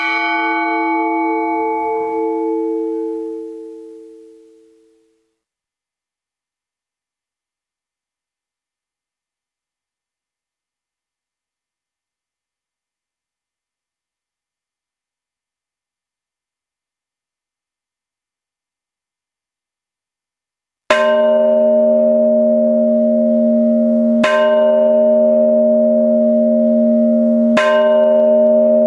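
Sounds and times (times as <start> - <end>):
bells ringing: 0.0 - 4.2, 21.0 - 28.8.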